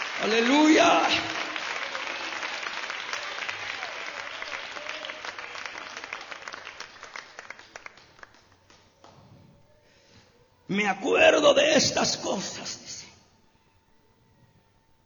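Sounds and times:
audience applauding: 0.0s - 9.3s
speech: 0.2s - 1.3s, 10.7s - 13.0s.

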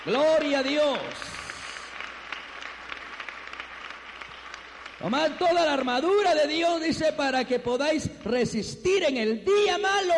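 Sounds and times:
speech: 0.0s - 1.3s, 5.0s - 10.1s
audience applauding: 0.0s - 6.7s.

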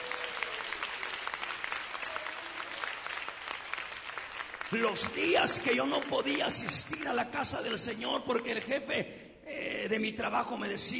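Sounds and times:
audience applause: 0.0s - 7.7s
speech: 4.7s - 10.9s.

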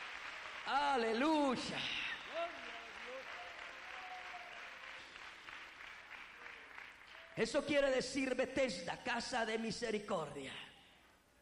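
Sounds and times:
audience applauding: 0.0s - 7.6s
speech: 0.7s - 2.5s, 7.4s - 10.7s.

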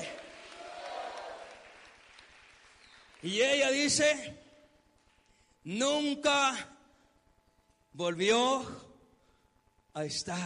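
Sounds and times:
large crowd clapping and cheering in a big hall: 0.0s - 3.8s
speech: 3.2s - 4.4s, 5.6s - 6.7s, 8.0s - 8.9s, 10.0s - 10.4s.

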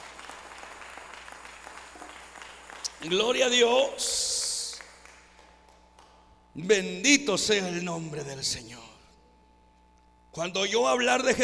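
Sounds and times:
audience applause: 0.0s - 3.7s, 4.3s - 6.1s
speech: 3.0s - 4.3s, 6.6s - 8.9s, 10.4s - 11.4s.

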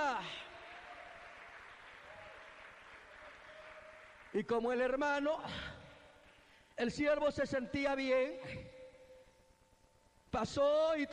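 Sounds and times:
crowd audience clapping hands: 0.0s - 5.0s
speech: 4.3s - 5.8s, 6.8s - 8.8s, 10.3s - 11.1s.

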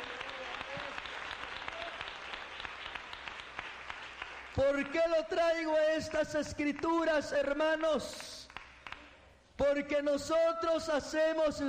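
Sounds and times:
audience applause: 0.0s - 5.0s
speech: 4.6s - 8.3s, 9.7s - 11.6s.

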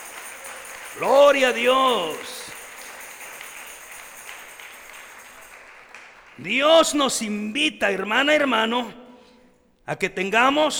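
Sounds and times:
audience applause: 0.0s - 7.0s
speech: 1.0s - 2.4s, 6.4s - 9.0s, 9.9s - 10.7s.

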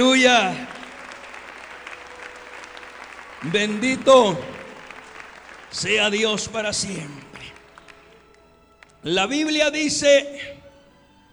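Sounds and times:
speech: 0.0s - 0.7s, 3.4s - 4.6s, 5.7s - 7.2s, 9.0s - 10.6s
audience applause: 0.0s - 9.0s.

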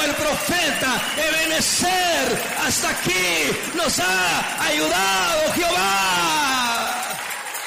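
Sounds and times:
audience applause: 0.0s - 7.6s
speech: 0.3s - 7.0s.

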